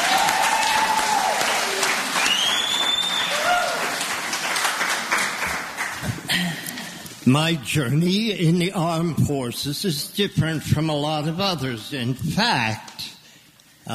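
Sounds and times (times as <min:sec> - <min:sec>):
audience applause: 0:00.0 - 0:06.5
speech: 0:07.3 - 0:13.0.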